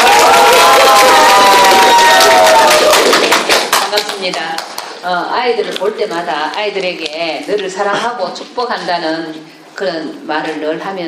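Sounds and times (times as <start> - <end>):
audience applause and cheering: 0.0 - 3.8
speech: 5.0 - 11.0.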